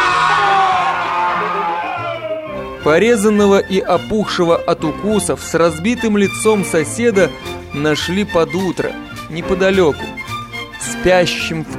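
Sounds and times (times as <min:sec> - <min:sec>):
man screaming in pain: 0:00.0 - 0:02.6
speech: 0:02.8 - 0:10.2, 0:10.8 - 0:11.7.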